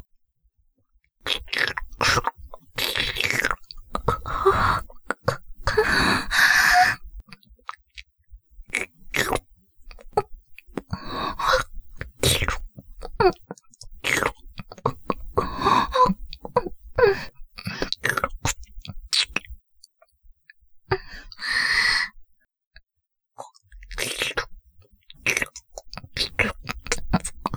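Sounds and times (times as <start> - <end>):
ASMR ear licking sounds: 1.3 - 7.8, 8.7 - 19.5, 23.5 - 27.5.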